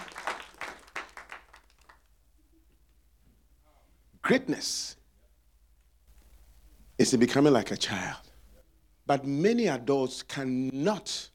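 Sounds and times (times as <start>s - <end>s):
audience clapping: 0.0s - 2.1s
speech: 4.3s - 5.0s, 7.0s - 8.3s, 9.1s - 11.3s.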